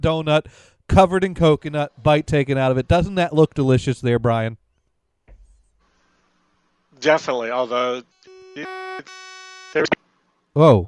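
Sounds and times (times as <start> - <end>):
speech: 0.0 - 4.6, 7.0 - 8.0, 9.8 - 10.0, 10.6 - 10.8
electronic beeps: 8.3 - 10.0.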